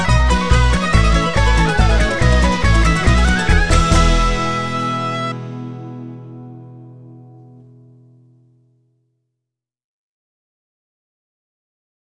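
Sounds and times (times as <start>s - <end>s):
hornpipe folk tune: 0.0s - 6.6s.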